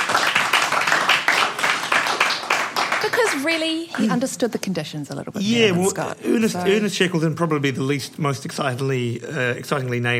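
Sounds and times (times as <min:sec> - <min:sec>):
small group clapping: 0:00.0 - 0:04.4
speech: 0:03.1 - 0:10.1.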